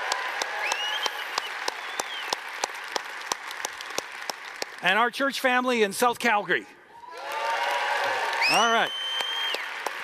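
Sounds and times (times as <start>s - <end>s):
audience cheering: 0.0s - 2.4s, 7.0s - 10.0s
speech: 4.8s - 6.8s, 8.5s - 9.0s.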